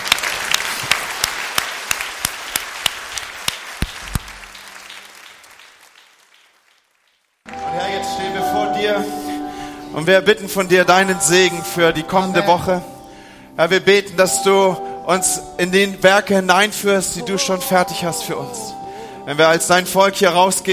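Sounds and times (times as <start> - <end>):
audience applause: 0.0 - 8.1
speech: 10.0 - 12.9, 13.6 - 20.7.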